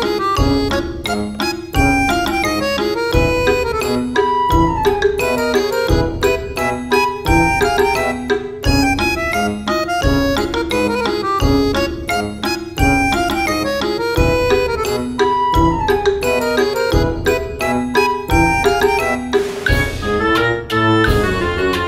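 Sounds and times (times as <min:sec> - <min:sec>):
cheerful funny music: 0:00.0 - 0:21.8.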